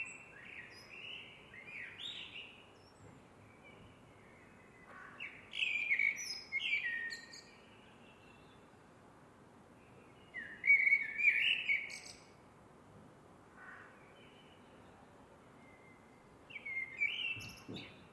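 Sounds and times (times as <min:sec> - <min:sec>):
Eurasian blackbird singing: 0:00.0 - 0:08.7, 0:09.9 - 0:12.3, 0:15.6 - 0:18.1.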